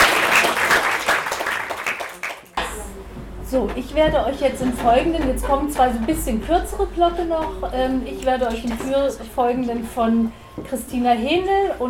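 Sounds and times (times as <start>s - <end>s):
audience applause: 0.0s - 2.6s
speech: 3.5s - 11.8s.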